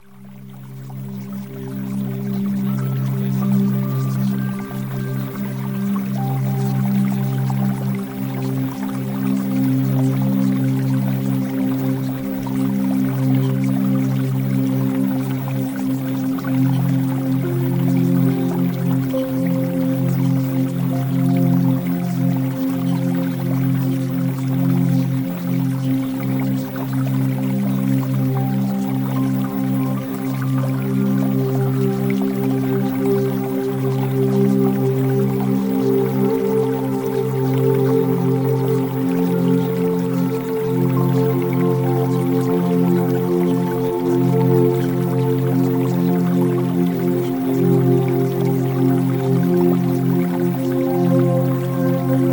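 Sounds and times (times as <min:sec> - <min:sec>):
music: 0:00.0 - 0:52.3.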